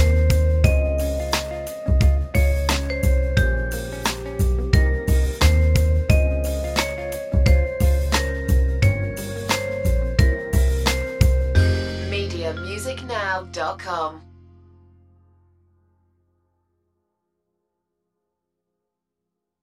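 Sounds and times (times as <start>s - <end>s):
jazzy music: 0.0s - 15.2s.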